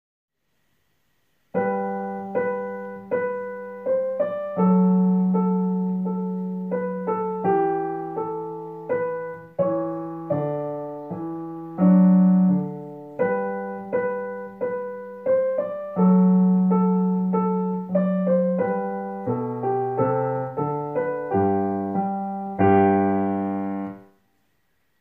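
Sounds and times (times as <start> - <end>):
piano piece allegro moderato: 1.5 - 24.2.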